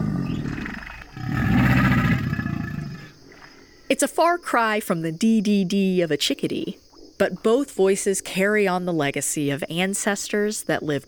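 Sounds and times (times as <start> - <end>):
American alligator growl: 0.0 - 3.3
speech: 3.9 - 11.0.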